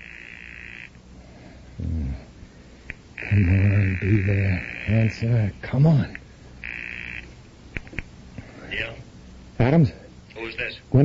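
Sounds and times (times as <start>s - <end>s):
telephone ringing on the other end: 0.0s - 1.0s, 3.2s - 5.2s
speech: 3.3s - 6.2s, 9.6s - 11.0s.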